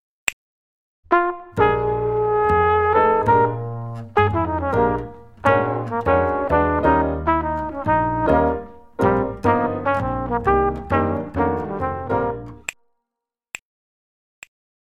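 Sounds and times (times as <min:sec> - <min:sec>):
drumless backing track: 0:01.6 - 0:12.6.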